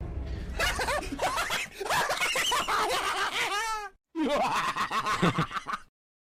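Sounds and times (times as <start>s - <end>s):
person laughing: 0.5s - 5.9s.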